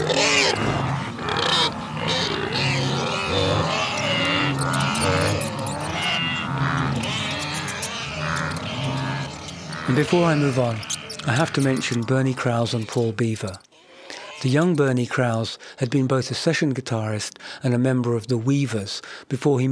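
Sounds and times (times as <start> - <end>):
wildebeest bellowing: 0.0 - 15.0
mice squeaking: 0.0 - 15.1
pigs grunting: 0.0 - 15.1
speech: 10.0 - 13.7, 14.4 - 19.6.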